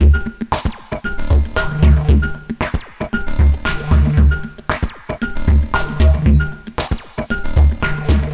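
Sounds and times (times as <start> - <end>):
115 BPM synth stab loop: 1.1 - 2.5, 3.1 - 4.6, 5.2 - 8.3.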